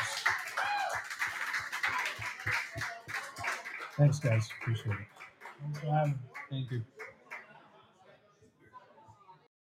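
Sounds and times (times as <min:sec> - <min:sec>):
round of applause: 0:00.0 - 0:07.5
speech: 0:04.0 - 0:07.0.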